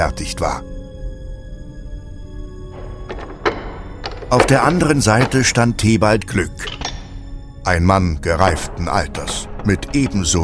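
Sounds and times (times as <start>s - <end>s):
speech: 0.0s - 0.7s, 4.3s - 6.8s, 7.7s - 10.4s
four door locks unlocking: 2.7s - 5.7s, 6.6s - 7.2s.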